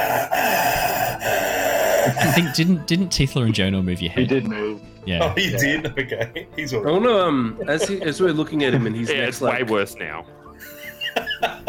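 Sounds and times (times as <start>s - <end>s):
person imitating dry raspy breathing: 0.0s - 2.7s
speech: 2.0s - 10.7s
laughter: 2.1s - 2.9s, 4.2s - 10.0s, 10.6s - 11.6s.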